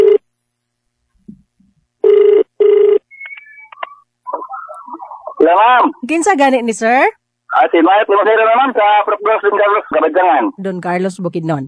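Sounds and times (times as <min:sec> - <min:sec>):
phone ringback tones during outgoing call: 0:00.0 - 0:00.2, 0:02.0 - 0:04.8
chirpy electronic tones: 0:03.0 - 0:05.4
speech: 0:05.5 - 0:11.6.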